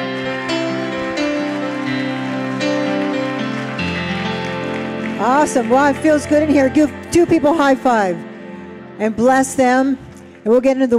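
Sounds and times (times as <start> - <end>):
audience applauding: 0.0 - 7.9
sustained keyboard chords: 0.0 - 10.9
speech: 5.2 - 8.3, 9.0 - 10.9.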